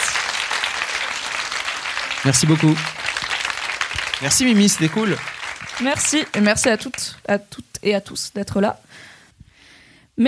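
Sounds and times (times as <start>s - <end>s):
audience applause: 0.0s - 7.2s
speech: 2.2s - 3.1s, 4.2s - 9.1s.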